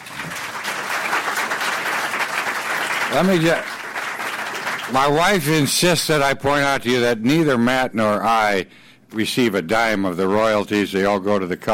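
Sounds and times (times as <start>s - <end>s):
audience applause: 0.0s - 5.2s
speech: 3.1s - 3.8s, 4.9s - 11.7s.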